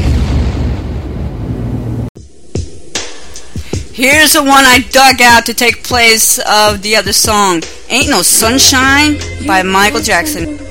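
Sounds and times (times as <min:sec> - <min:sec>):
explosion sound effect in a radio station jingle: 0:00.0 - 0:02.2
speech: 0:04.0 - 0:10.6.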